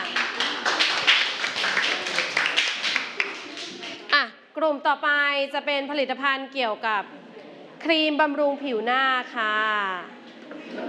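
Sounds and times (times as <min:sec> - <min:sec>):
applause: 0:00.0 - 0:04.2
speech: 0:04.6 - 0:07.2, 0:07.8 - 0:10.8.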